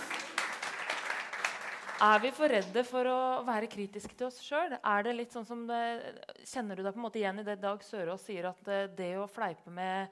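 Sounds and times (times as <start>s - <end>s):
audience applause: 0.0s - 2.4s
speech: 2.0s - 10.1s.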